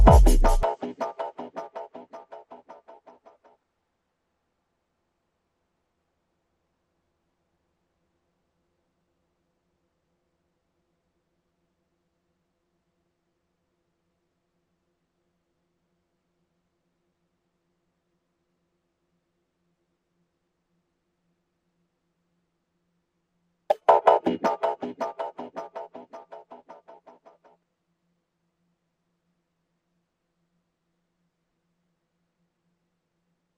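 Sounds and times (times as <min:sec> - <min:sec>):
percussion: 0:00.0 - 0:03.4, 0:23.7 - 0:27.4.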